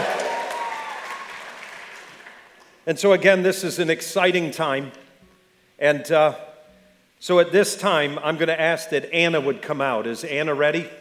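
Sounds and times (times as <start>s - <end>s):
audience cheering and applauding: 0.0s - 2.6s
speech: 2.9s - 5.0s, 5.8s - 6.5s, 7.2s - 10.9s.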